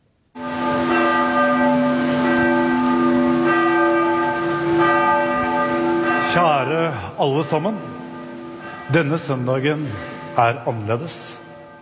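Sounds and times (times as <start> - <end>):
cathedral bells ringing for memorial service: 0.4 - 11.7
speech: 6.9 - 8.0, 8.9 - 11.4.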